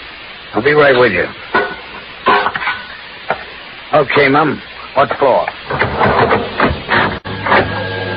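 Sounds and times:
speech: 0.5 - 1.6, 3.9 - 6.4
elevator starting to ascend in a radio drama: 5.6 - 8.1.

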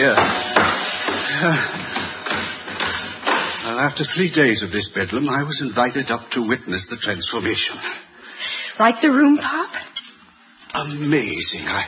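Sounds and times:
speech: 0.0 - 0.5, 1.4 - 1.8, 3.8 - 8.0, 8.8 - 9.8, 10.7 - 11.8
thumping and hammering overhead in an attic: 0.0 - 3.6.

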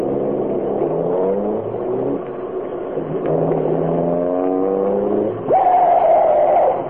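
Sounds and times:
car engine roaring and revving at high speed: 0.0 - 6.8
loud sustained tire screech: 3.5 - 6.8.

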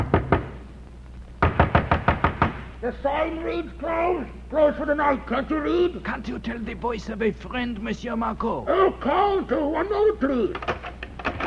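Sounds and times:
knocking on the door of an innkeeper at a port: 0.0 - 0.6, 1.4 - 2.6
speech: 2.8 - 10.7.

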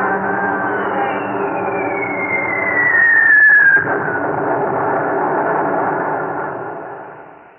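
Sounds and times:
roaring drone of bomber plane engines: 0.0 - 7.5
high whistle of a falling bomb: 0.1 - 4.3
heavy thump of an explosion: 3.6 - 7.4.

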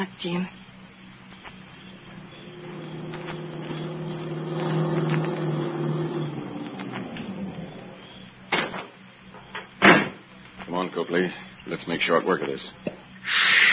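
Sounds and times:
speech: 0.0 - 0.6, 11.2 - 13.6
car engine droning as a tire goes flat, radio drama effect: 0.9 - 9.8
sharp bumps: 1.3 - 10.3.

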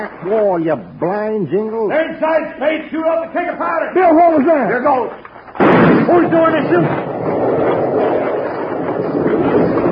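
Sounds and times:
speech: 0.0 - 7.4
landslide closing a mine tunnel: 5.6 - 9.9.

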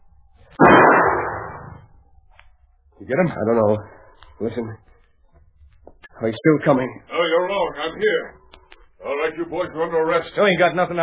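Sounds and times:
gunshot in a radio drama: 0.6 - 1.9
speech: 3.1 - 4.9, 6.2 - 8.4, 9.0 - 11.0.

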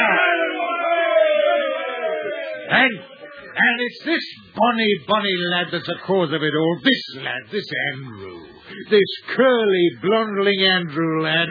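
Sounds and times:
group of men cheering: 0.0 - 3.8
speech: 2.7 - 11.5.

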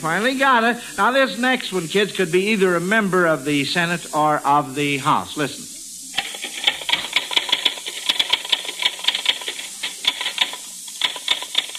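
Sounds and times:
speech: 0.0 - 5.6
typewriter typing: 6.2 - 11.7.

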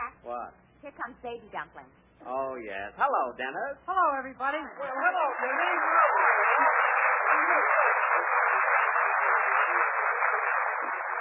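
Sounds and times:
speech: 0.2 - 6.8
studio audience clapping: 4.6 - 11.2.

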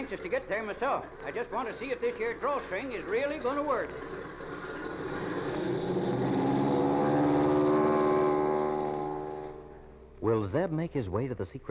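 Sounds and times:
speech: 0.0 - 4.4, 10.2 - 11.6
airplane motor starting up: 5.6 - 10.1.

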